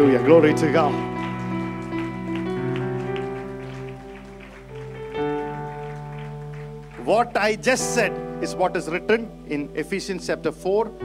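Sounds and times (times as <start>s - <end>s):
speech: 0.0s - 1.3s, 7.1s - 11.0s
audience clapping: 0.0s - 8.4s
sustained keyboard chords: 0.0s - 11.0s.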